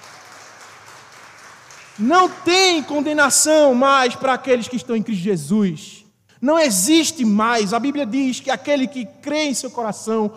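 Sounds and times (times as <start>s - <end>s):
audience applauding: 0.0s - 2.4s
speech: 2.0s - 10.3s.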